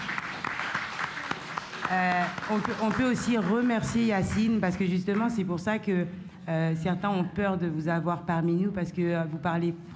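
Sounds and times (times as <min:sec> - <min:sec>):
audience applauding a speaker: 0:00.0 - 0:04.5
speech: 0:01.9 - 0:09.9.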